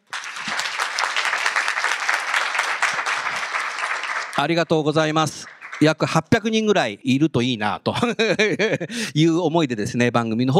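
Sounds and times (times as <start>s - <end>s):
large audience applause in a hall: 0.0s - 6.2s
speech: 4.4s - 10.5s
laughter: 7.9s - 9.1s.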